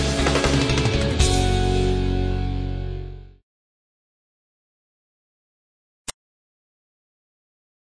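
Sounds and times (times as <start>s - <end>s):
intro music: 0.0s - 3.4s.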